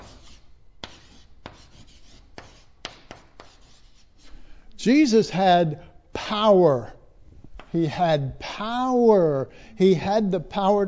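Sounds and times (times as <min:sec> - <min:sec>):
writing on a board: 0:00.0 - 0:04.3
speech: 0:04.8 - 0:07.0, 0:07.7 - 0:10.8.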